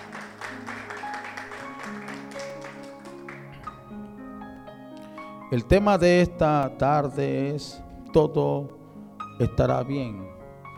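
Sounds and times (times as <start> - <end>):
audience applauding: 0.0 - 3.7
speech: 5.5 - 8.8, 9.4 - 10.4.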